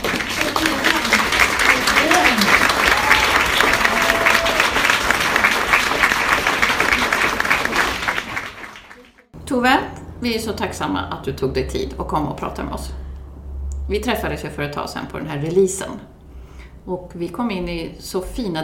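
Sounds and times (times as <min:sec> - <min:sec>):
applause: 0:00.0 - 0:09.4
speech: 0:09.6 - 0:13.0, 0:13.9 - 0:16.1, 0:16.8 - 0:18.6.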